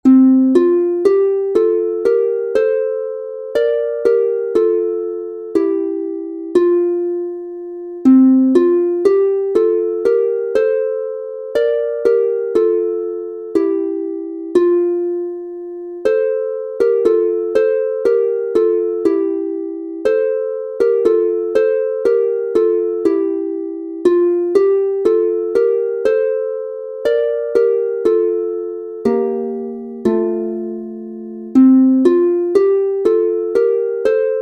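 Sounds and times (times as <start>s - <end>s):
two-voice instrumental harp in F major: 0.0s - 34.4s.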